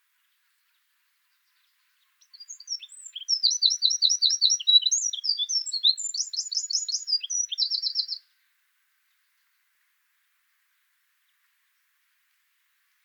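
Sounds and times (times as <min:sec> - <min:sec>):
Eurasian wren singing: 0:02.2 - 0:08.2.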